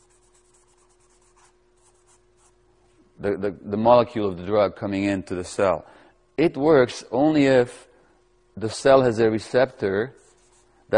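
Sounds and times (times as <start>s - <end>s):
scratchy strokes of a writing tool drawing a drug molecule diagram: 0.0s - 2.6s, 10.2s - 10.8s
speech: 3.2s - 7.9s, 8.6s - 10.2s.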